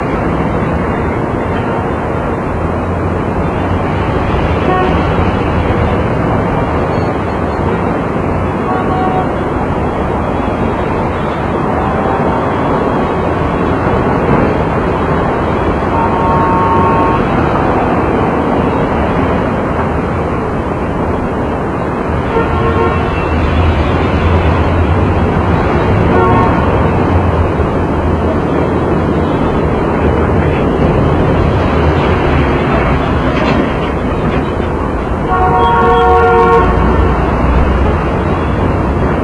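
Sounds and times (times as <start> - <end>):
traffic: 0.0 - 39.2.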